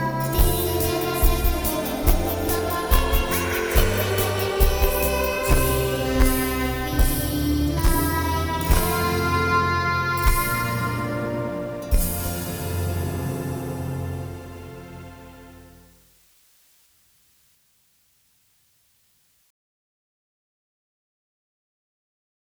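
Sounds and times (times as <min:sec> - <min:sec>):
nursery rhyme song: 0:00.0 - 0:15.9.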